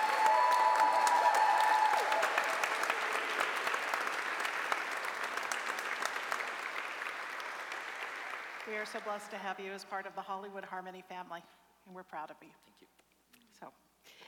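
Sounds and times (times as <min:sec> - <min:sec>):
audience applause: 0:00.0 - 0:09.0
speech: 0:08.8 - 0:13.0, 0:13.6 - 0:13.8.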